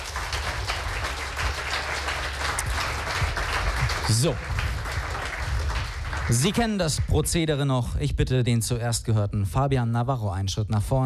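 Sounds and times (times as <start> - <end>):
audience applause: 0.0 - 7.4
speech: 4.1 - 4.5, 6.3 - 11.0.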